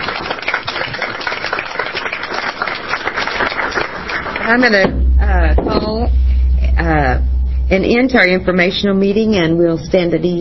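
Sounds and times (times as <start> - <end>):
audience applause: 0.0 - 4.8
speech: 4.5 - 5.0, 5.6 - 6.2, 6.8 - 10.3.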